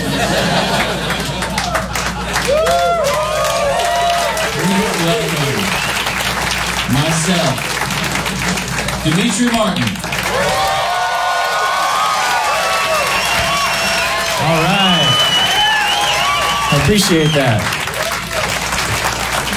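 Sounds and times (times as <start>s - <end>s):
laughter: 0.0s - 5.8s, 7.0s - 9.6s
audience applause: 0.0s - 19.5s
audience cheers and whoops: 1.6s - 6.3s, 10.2s - 18.6s
speech: 9.0s - 10.1s, 16.8s - 17.8s.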